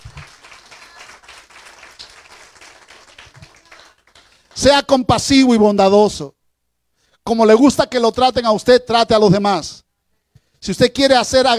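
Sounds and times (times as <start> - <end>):
audience applause: 0.0 - 4.6
speech: 4.6 - 6.4, 7.2 - 9.8, 10.6 - 11.5.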